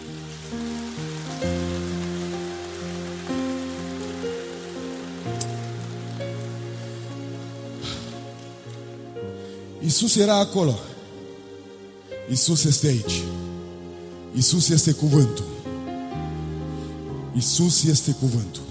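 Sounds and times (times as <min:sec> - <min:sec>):
crowd clapping: 0:00.0 - 0:09.0
sustained low keyboard chords: 0:00.0 - 0:18.6
speech: 0:09.9 - 0:10.9, 0:12.3 - 0:13.6, 0:14.3 - 0:15.7, 0:17.4 - 0:18.6.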